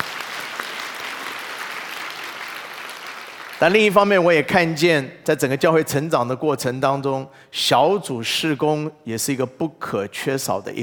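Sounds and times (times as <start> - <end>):
audience applause: 0.0 - 3.8
speech: 3.6 - 10.8.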